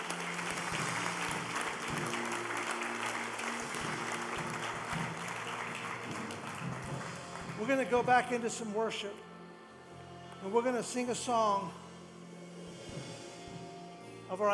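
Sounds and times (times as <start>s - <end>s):
audience applause: 0.0s - 8.4s
speech: 7.6s - 9.3s, 10.4s - 11.8s, 14.3s - 14.5s.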